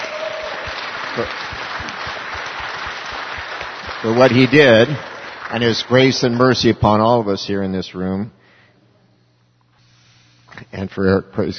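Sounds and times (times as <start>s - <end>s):
congregation clapping: 0.0s - 7.2s
speech: 1.2s - 1.6s, 4.0s - 8.4s, 10.7s - 11.5s.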